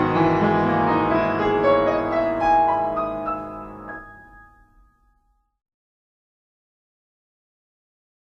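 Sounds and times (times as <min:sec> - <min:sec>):
prelude in G-sharp minor: 0:00.0 - 0:04.9.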